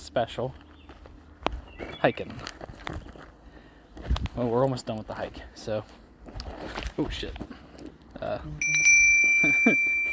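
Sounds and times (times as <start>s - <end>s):
speech: 0.2s - 0.6s, 2.0s - 3.0s, 4.4s - 6.0s, 6.6s - 7.6s, 8.2s - 10.0s
Elden Ring summoning bell notification chime: 8.6s - 10.1s.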